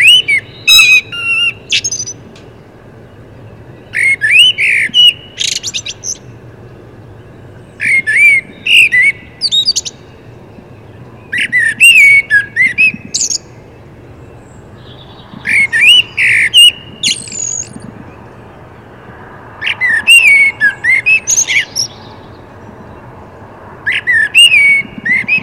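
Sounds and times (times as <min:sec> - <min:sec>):
common blackbird singing: 0:00.0 - 0:23.2, 0:23.8 - 0:25.4.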